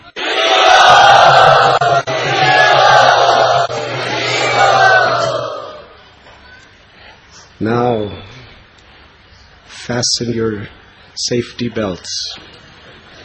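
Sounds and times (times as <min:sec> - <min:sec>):
audience at a yatra gathering cheering and whooping to welcome guests: 0:00.1 - 0:05.9
speech: 0:09.9 - 0:12.6.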